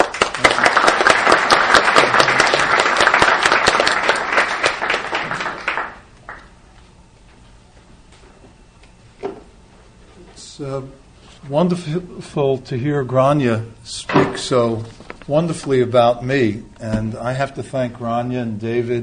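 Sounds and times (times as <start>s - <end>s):
audience applause welcoming a speaker at a talk on the Green Scare: 0.0s - 6.5s
speech: 10.8s - 19.0s.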